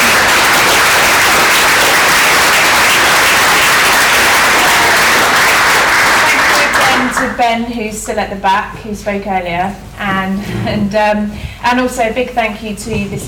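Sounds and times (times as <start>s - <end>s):
audience applause for panellists: 0.0s - 7.4s
speech: 7.4s - 13.2s.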